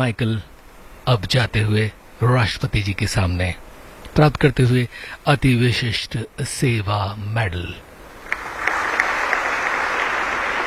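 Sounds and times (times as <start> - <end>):
speech: 0.0 - 3.6, 4.2 - 7.9
applause at a presidential medal ceremony: 8.2 - 10.6.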